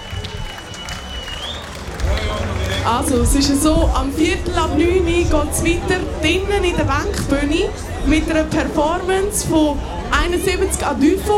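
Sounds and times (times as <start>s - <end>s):
audience applause: 0.0s - 3.4s
speech: 2.8s - 11.3s.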